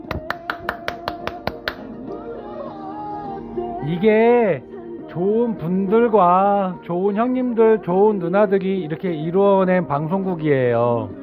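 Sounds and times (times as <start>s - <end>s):
applause: 0.1s - 1.8s
speech: 3.9s - 11.2s.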